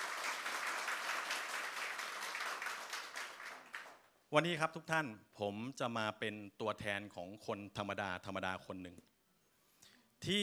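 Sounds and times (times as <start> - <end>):
audience applause: 0.0 - 4.0
speech: 4.3 - 9.1, 10.2 - 10.4.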